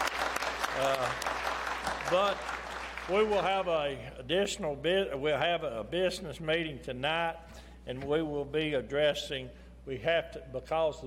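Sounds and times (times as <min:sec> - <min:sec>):
round of applause: 0:00.0 - 0:03.6
speech: 0:00.8 - 0:01.3, 0:02.0 - 0:02.5, 0:03.1 - 0:11.0.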